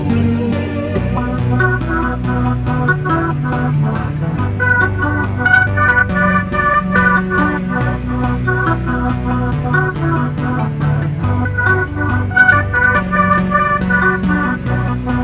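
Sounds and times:
techno music: 0.0 - 15.2.

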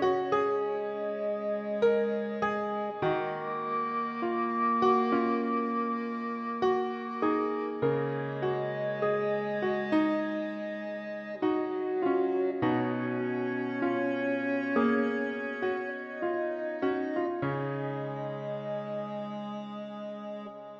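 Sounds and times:
emotional piano music: 0.0 - 20.7.

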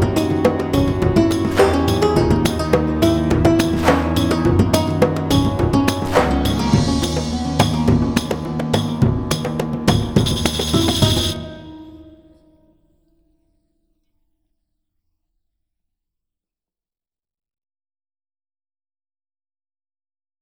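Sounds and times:
battle music: 0.0 - 11.7.

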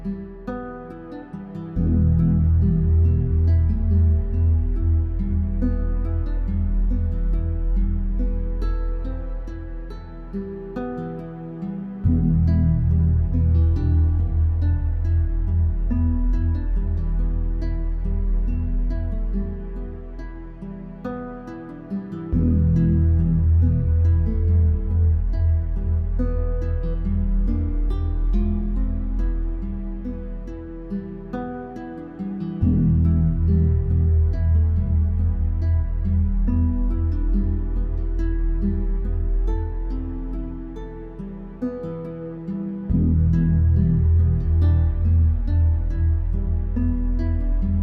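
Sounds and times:
despairing village music loop: 0.0 - 47.8.

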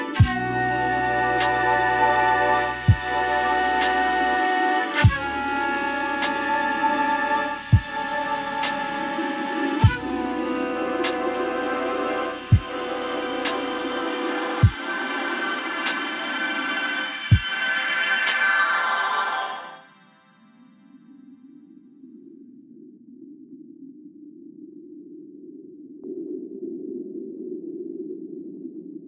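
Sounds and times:
Japanese sci-fi intro music: 0.2 - 20.6.

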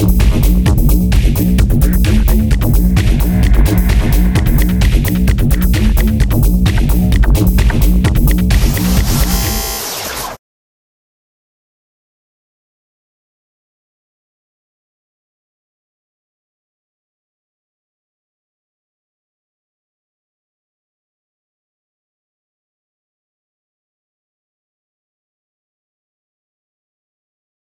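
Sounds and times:
level game music: 0.1 - 9.8.

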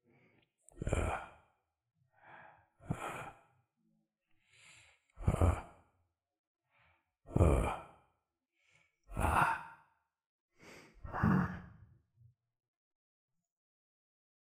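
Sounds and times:
breathing: 0.0 - 6.0, 6.6 - 11.9.

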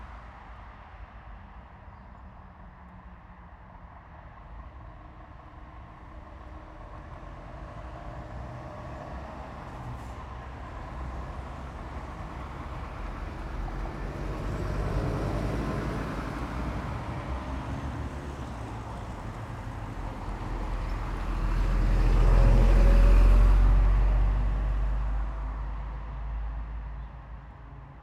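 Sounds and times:
city street traffic with cars: 2.3 - 28.0
city tram: 2.4 - 25.5.

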